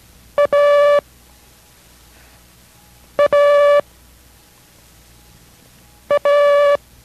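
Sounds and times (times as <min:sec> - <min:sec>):
Morse code letter A, dit-dah beeps: 0:00.4 - 0:01.0, 0:03.2 - 0:03.8, 0:06.1 - 0:06.8.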